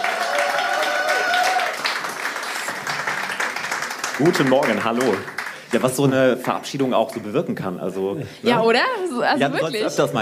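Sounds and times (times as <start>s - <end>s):
audience applause: 0.0s - 7.3s
speech: 4.2s - 10.2s.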